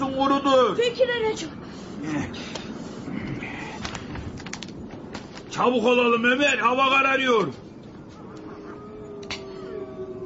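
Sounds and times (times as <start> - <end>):
speech: 0.2 - 3.8, 5.6 - 7.6
hungry wolves howling: 8.0 - 10.2.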